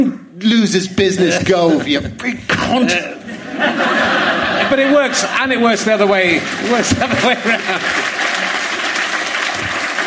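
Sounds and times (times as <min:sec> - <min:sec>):
speech: 0:00.0 - 0:08.1
laughter: 0:01.3 - 0:09.9
audience applause at a live comedy event: 0:03.6 - 0:10.0.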